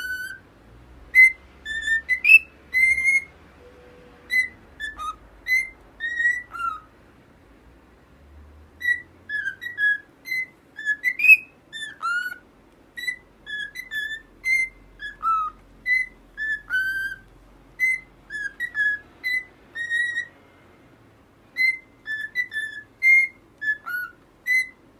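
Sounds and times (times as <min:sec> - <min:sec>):
cockatiel whistling: 0:00.0 - 0:00.4, 0:01.1 - 0:06.9, 0:08.8 - 0:20.3, 0:21.5 - 0:24.9.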